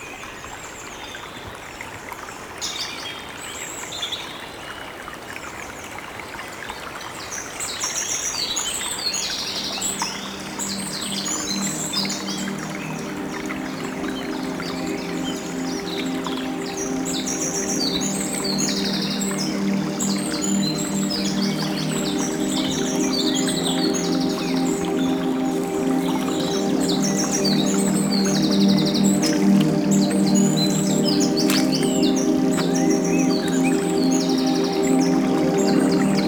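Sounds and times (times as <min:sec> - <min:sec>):
small stream flowing through a forest: 0:00.2 - 0:36.2
birds chirping and calling: 0:09.8 - 0:36.2.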